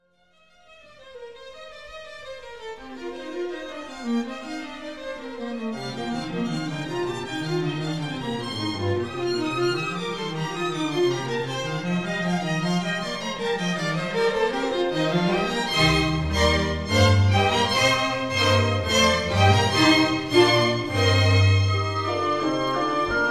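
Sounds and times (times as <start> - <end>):
orchestral music: 5.6 - 23.3.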